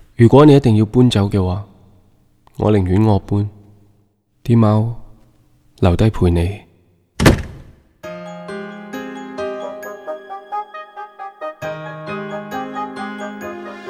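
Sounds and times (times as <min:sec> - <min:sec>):
speech: 0:00.2 - 0:01.7, 0:02.6 - 0:03.6, 0:04.5 - 0:05.0, 0:05.8 - 0:06.6
door opening and closing shut: 0:07.2 - 0:07.9.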